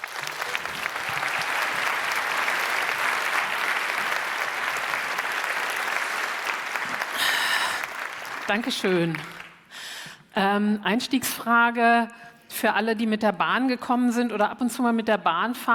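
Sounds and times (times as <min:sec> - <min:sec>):
audience applause: 0:00.0 - 0:09.6
speech: 0:08.5 - 0:09.4, 0:10.4 - 0:15.7.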